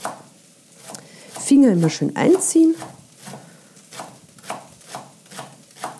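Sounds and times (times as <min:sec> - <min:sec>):
knife chopping leek stalks on a board: 0:00.0 - 0:00.2, 0:02.8 - 0:05.9
speech: 0:01.5 - 0:03.0.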